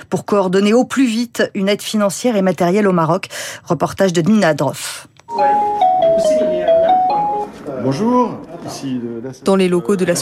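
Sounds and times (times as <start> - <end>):
speech: 0.1 - 6.6, 7.8 - 10.1
telephone ringing: 5.3 - 7.6.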